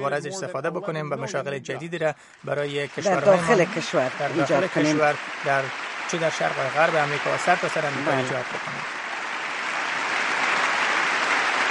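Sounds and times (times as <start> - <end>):
speech: 0.0 - 9.0
applause of audience in Congress: 2.4 - 11.6.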